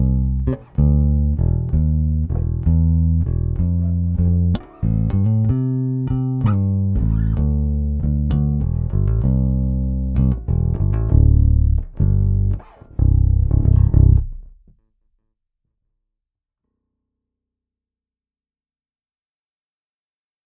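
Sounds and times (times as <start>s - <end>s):
blues bass track: 0.0s - 14.7s.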